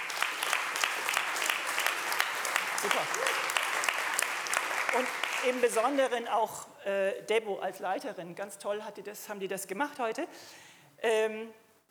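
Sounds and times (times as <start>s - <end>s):
audience applause: 0.0s - 6.2s
speech: 2.8s - 3.6s, 4.9s - 11.8s.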